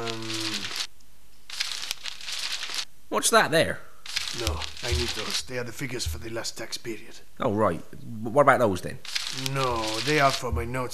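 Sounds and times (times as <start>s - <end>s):
sheets of paper rustling as someone rummages: 0.0s - 2.9s, 4.0s - 6.3s, 9.0s - 10.8s
speech: 3.2s - 10.9s.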